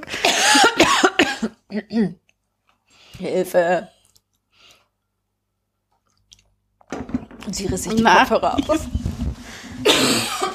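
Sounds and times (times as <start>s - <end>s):
person coughing from choking on a biscuit: 0.1s - 1.6s, 9.8s - 10.5s
speech: 1.8s - 2.2s, 3.2s - 4.0s, 7.5s - 10.5s.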